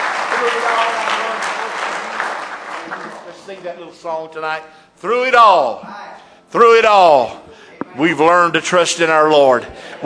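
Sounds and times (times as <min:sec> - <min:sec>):
church congregation clapping hands in praise during a service: 0:00.0 - 0:03.9
speech: 0:00.4 - 0:01.9, 0:02.9 - 0:10.0.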